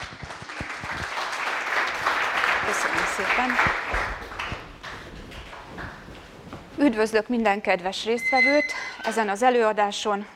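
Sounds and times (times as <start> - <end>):
audience applause: 0.0 - 6.0
speech: 2.7 - 4.2, 6.8 - 10.3.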